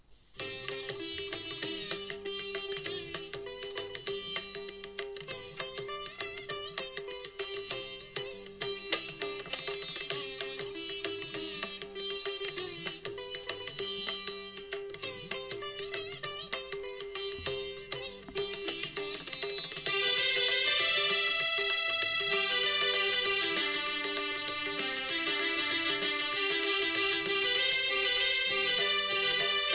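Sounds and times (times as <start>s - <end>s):
morning raga: 0.4s - 29.7s.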